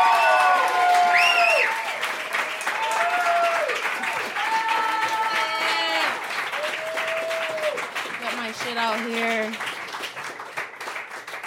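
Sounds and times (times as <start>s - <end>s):
whoops and shouted cheers: 0.0s - 7.8s
crowd clapping: 0.0s - 11.4s.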